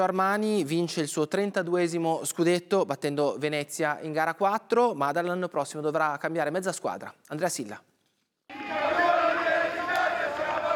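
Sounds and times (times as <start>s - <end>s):
speech: 0.0s - 7.9s
crowd roaring in celebration of a championship win: 8.5s - 10.7s.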